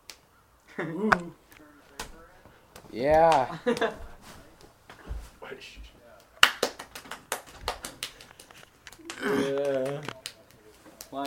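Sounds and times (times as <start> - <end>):
speech: 0.8 - 1.4, 2.9 - 4.1, 5.5 - 5.9, 9.2 - 10.1
hands clapping together: 2.0 - 4.0, 5.8 - 11.2.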